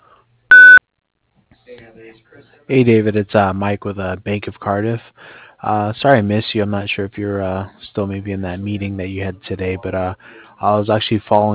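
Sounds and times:
voicemail recording electronic beep: 0.5s - 0.8s
speech: 1.7s - 11.5s.

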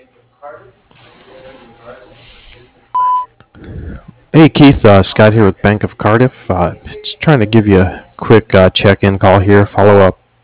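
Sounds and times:
speech: 0.4s - 2.8s, 4.4s - 10.2s
voicemail beep before recording a message: 3.0s - 3.3s.

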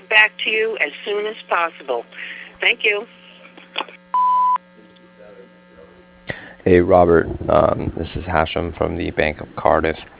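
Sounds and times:
speech: 0.2s - 3.2s, 6.6s - 10.1s
answering machine tone: 4.1s - 4.6s.

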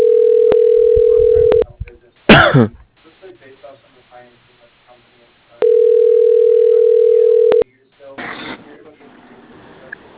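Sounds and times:
telephone dial tone: 0.0s - 1.6s, 5.6s - 7.6s
speech: 2.6s - 2.8s.

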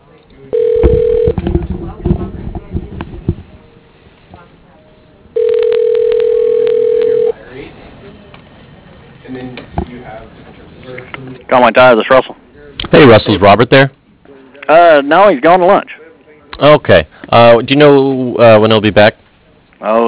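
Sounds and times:
faint murmuring and rustling: 0.0s - 20.0s
phone line ringback tones: 0.5s - 1.4s, 5.4s - 7.4s
speech: 11.5s - 12.3s, 12.9s - 14.0s, 14.7s - 15.9s, 16.6s - 19.2s, 19.8s - 20.0s.

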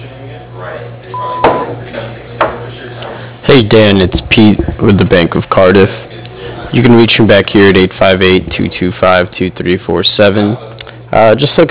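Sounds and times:
speech: 0.6s - 6.1s, 6.7s - 11.6s
answering machine beep: 1.1s - 1.7s.

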